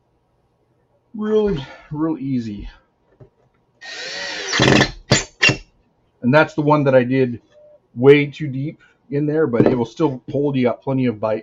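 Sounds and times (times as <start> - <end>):
speech: 1.2 - 2.8, 6.2 - 11.4
power drill driving a screw into wood: 3.8 - 5.6.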